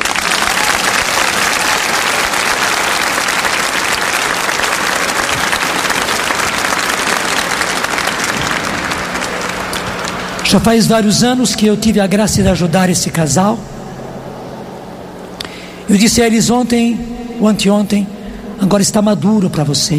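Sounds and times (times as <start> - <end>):
audience applauding: 0.0 - 11.0
speech: 10.5 - 13.8, 15.9 - 19.9.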